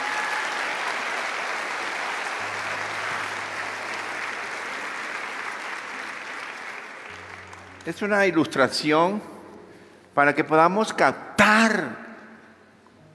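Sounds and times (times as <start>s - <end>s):
audience applauding: 0.0s - 8.4s
speech: 7.8s - 9.3s, 10.2s - 12.0s.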